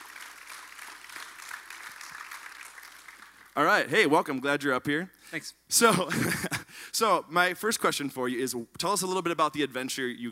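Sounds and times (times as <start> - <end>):
audience applause: 0.0 - 3.6
speech: 3.6 - 10.3.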